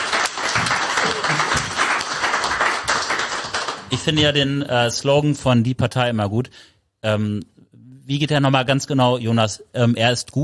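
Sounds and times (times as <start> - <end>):
audience applause: 0.0 - 4.2
speech: 3.9 - 10.4.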